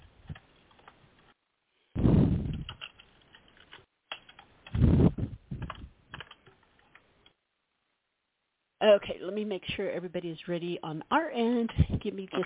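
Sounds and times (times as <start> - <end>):
typing on a computer keyboard: 2.5 - 4.8, 5.6 - 7.0
speech: 8.8 - 12.4.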